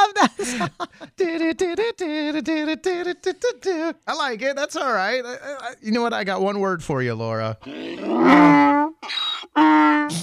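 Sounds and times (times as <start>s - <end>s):
speech: 0.2s - 10.2s
donkey braying: 7.6s - 10.2s.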